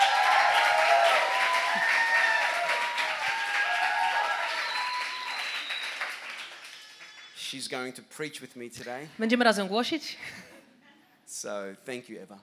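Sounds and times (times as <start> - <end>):
audience applause: 0.0 - 7.4
speech: 7.5 - 10.5, 11.4 - 12.4.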